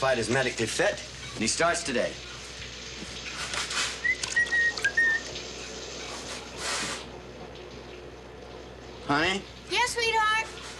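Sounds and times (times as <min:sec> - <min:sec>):
speech: 0:00.0 - 0:02.3, 0:09.1 - 0:10.5
running shower water: 0:00.0 - 0:10.7
high whistle-like tones: 0:04.0 - 0:05.3.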